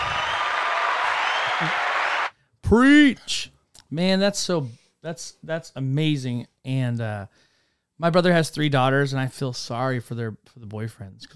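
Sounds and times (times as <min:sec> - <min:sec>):
applause sound effect from button: 0:00.0 - 0:02.3
speech: 0:01.6 - 0:01.8, 0:02.7 - 0:11.3.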